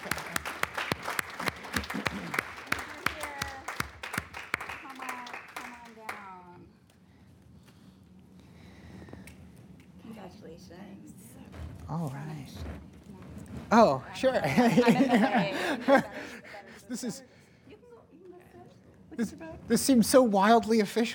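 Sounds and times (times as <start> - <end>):
small group clapping: 0.0 - 6.6
speech: 13.7 - 17.3, 19.2 - 21.1
voices and laughter: 14.2 - 17.3.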